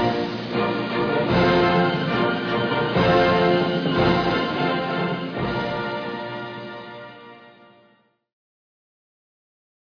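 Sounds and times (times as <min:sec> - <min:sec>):
fanfare: 0:00.0 - 0:07.9.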